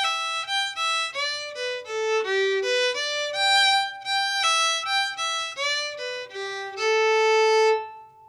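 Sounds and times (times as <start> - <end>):
jig tune learning version: 0.0 - 8.2.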